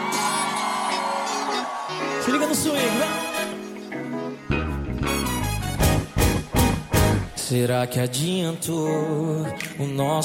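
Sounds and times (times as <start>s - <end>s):
live audience shouting and cheering: 0.0s - 7.7s
speech: 2.3s - 3.3s, 7.5s - 10.2s.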